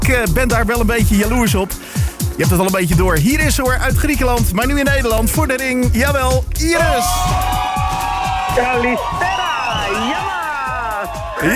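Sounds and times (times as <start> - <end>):
speech: 0.1 - 7.5, 8.6 - 10.4, 11.4 - 11.5
audience applause: 7.0 - 11.5.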